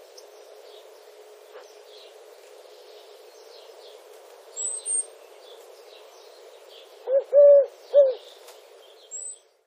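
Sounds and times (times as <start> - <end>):
Streptopelia decaocto Eurasian collared dove cooing: 7.0 - 8.4.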